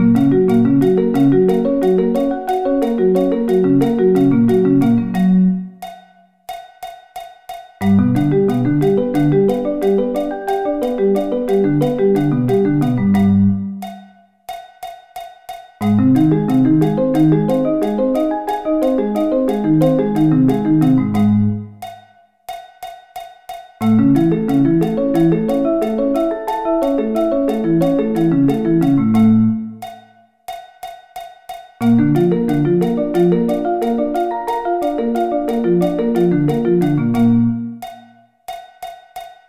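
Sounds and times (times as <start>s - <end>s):
arpeggio inversions: 0.0s - 5.6s, 7.9s - 13.7s, 15.9s - 21.8s, 23.8s - 29.7s, 31.8s - 37.8s.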